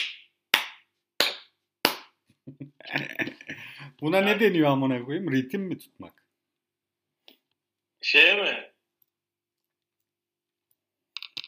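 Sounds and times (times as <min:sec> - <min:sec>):
hand claps: 0:00.0 - 0:02.2
speech: 0:02.5 - 0:03.4, 0:04.0 - 0:06.2, 0:08.1 - 0:08.7
murmuring or laughter: 0:02.5 - 0:03.9.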